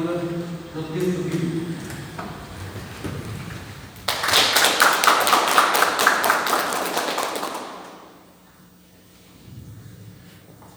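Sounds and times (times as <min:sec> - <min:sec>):
speech: 0:00.1 - 0:01.5
round of applause: 0:04.0 - 0:08.3.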